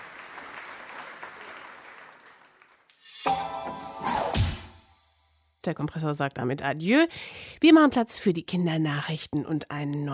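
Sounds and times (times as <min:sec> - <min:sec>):
audience applause: 0:00.0 - 0:02.9
sweeping whooshes: 0:03.0 - 0:04.8
sharp thump: 0:04.0 - 0:04.8
speech: 0:05.6 - 0:10.1.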